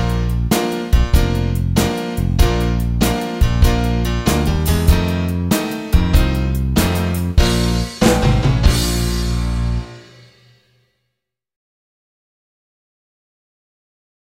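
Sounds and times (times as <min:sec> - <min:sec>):
blues music: 0:00.0 - 0:10.4.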